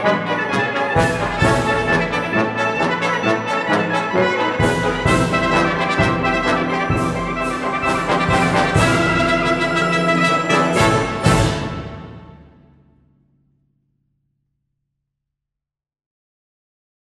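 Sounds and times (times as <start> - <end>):
brass instruments: 0.0 - 12.8.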